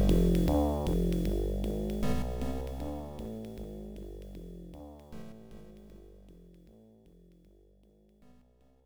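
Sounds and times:
jazz music: 0:00.0 - 0:04.4.

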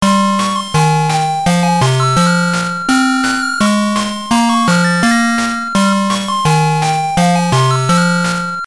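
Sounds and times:
VS mode lose jingle: 0:00.5 - 0:08.6.

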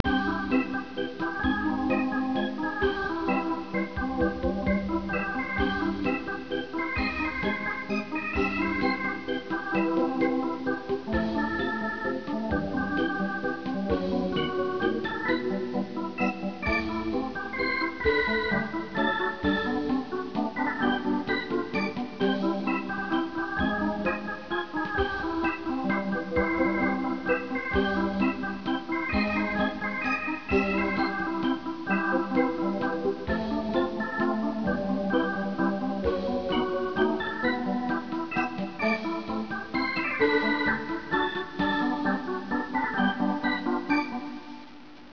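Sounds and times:
piano waltz: 0:00.0 - 0:45.1.

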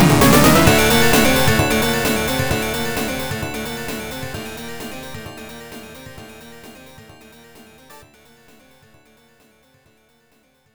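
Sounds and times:
strange beat: 0:00.0 - 0:08.0.

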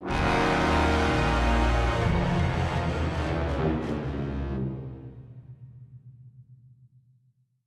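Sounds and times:
failed scare stinger: 0:00.0 - 0:05.6.

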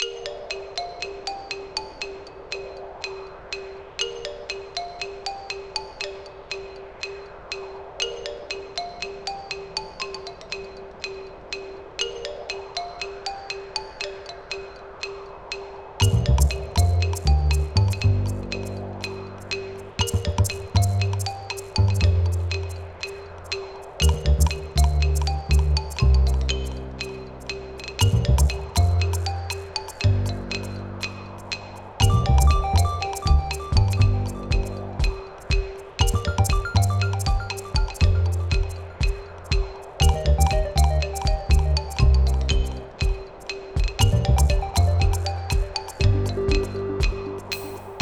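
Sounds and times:
marimba: 0:00.0 - 0:48.0.

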